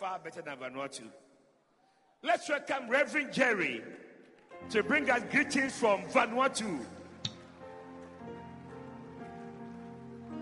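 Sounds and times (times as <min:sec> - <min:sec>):
speech: 0:00.0 - 0:01.3, 0:02.2 - 0:07.0
audience clapping hands: 0:04.4 - 0:10.4.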